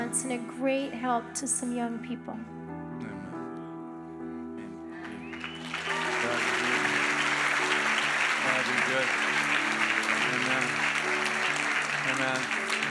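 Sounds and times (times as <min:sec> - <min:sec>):
speech: 0:00.2 - 0:02.6, 0:12.2 - 0:12.6
crowd hand clapping: 0:05.0 - 0:12.8.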